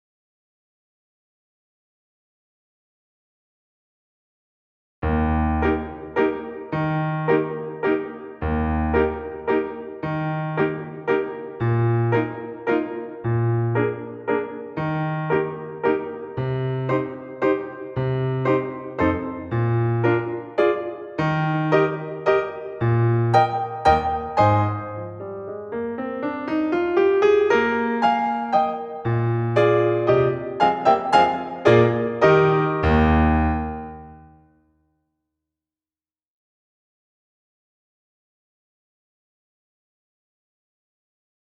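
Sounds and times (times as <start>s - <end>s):
musical accompaniment in E flat: 5.0s - 34.4s.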